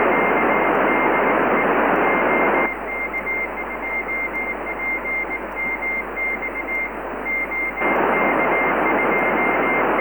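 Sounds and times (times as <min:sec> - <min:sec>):
CW Morse code beeps: 0:00.0 - 0:09.9.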